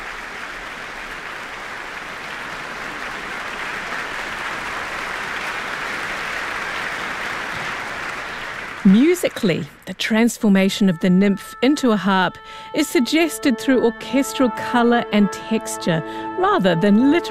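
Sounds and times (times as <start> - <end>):
audience applause in concert hall for concertmaster: 0.0 - 10.3
speech: 8.9 - 17.3.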